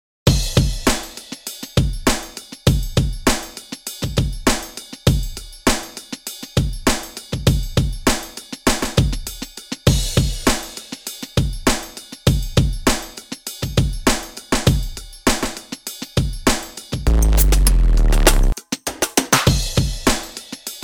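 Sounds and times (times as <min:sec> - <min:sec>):
drum kit drum and bass groove: 0:00.3 - 0:10.5, 0:12.3 - 0:20.2.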